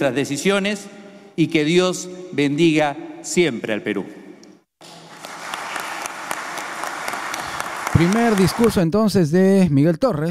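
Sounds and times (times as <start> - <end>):
speech: 0.0 - 4.2, 8.0 - 10.3
senators applauding in legislative chamber: 4.8 - 8.9.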